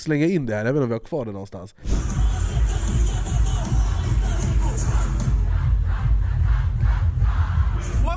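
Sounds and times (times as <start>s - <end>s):
speech: 0.0s - 2.2s
large festival crowd singing along: 1.9s - 8.0s.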